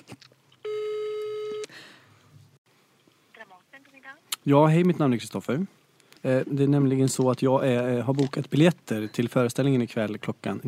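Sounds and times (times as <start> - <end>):
telephone line tone: 0.6 - 1.7
speech: 4.5 - 10.6.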